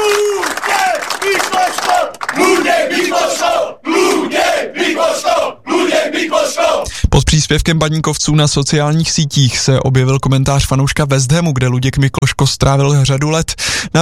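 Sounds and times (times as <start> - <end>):
football fans chanting in unison: 0.0 - 6.9
speech: 7.2 - 14.0.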